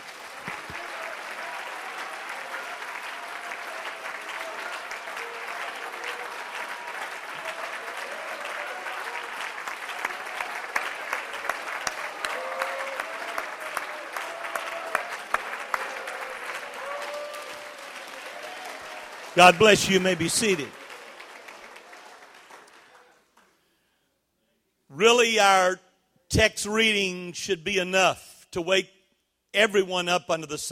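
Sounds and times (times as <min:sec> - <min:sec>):
audience clapping and applauding: 0:00.0 - 0:23.8
speech: 0:19.4 - 0:20.8, 0:25.0 - 0:30.7.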